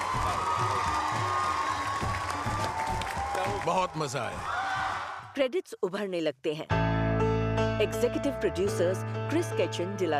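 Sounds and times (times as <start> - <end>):
standing audience applauding and cheering: 0.0 - 5.4
speech: 3.6 - 4.6, 5.4 - 6.9, 7.8 - 10.1.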